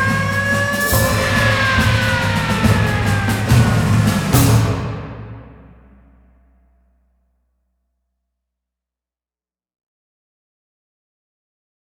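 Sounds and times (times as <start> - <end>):
percussion: 0.0 - 6.8.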